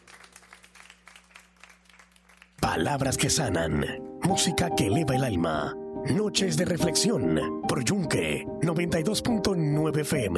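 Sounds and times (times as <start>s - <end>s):
audience applause: 0.0s - 2.9s
speech: 2.7s - 10.3s.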